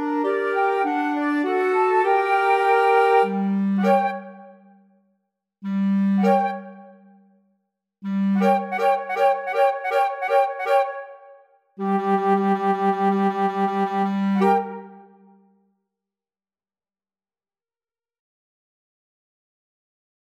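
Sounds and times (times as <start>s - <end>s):
flutes playing: 0.0s - 4.7s, 5.6s - 7.1s, 8.0s - 15.4s
clarinet: 0.0s - 4.8s, 5.6s - 7.2s, 8.0s - 15.5s.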